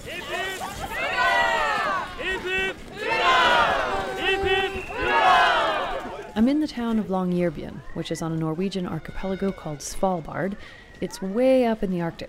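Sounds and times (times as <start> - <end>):
crowd of Norwegians cheering and whooping at a May 17th parade in Longyearbyen, Svalbard: 0.0 - 6.4
speech: 6.4 - 12.2.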